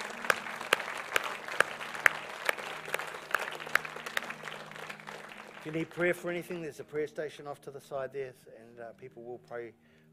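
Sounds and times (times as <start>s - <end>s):
audience applause: 0.0s - 6.4s
speech: 5.6s - 9.9s.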